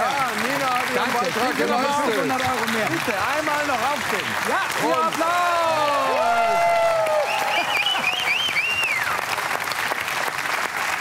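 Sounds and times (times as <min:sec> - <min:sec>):
crowd clapping at a fundraising gathering: 0:00.0 - 0:10.9
speech: 0:01.0 - 0:06.7
high wavering cheer: 0:05.4 - 0:09.2.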